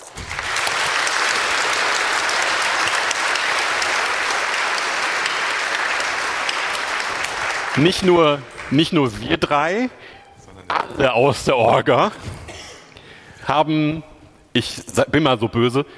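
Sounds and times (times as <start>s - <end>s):
audience applause: 0.0s - 9.6s
speech: 7.8s - 10.2s, 10.9s - 12.3s, 13.5s - 15.9s.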